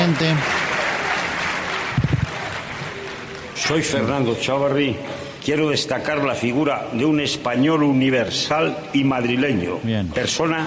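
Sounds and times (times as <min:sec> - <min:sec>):
audience applause: 0:00.0 - 0:04.1
speech: 0:00.1 - 0:00.6, 0:03.6 - 0:10.6.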